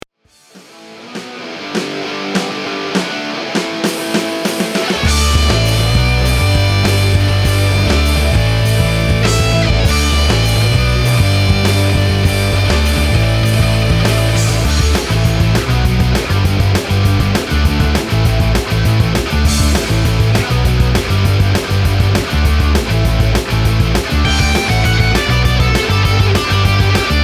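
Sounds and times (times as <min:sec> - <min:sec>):
punk music at 200 bpm: 0:00.4 - 0:27.2.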